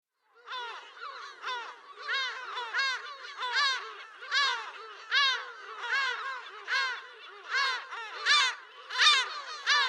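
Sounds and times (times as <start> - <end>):
lesser black-backed gull yelping calls: 0.4 - 9.8.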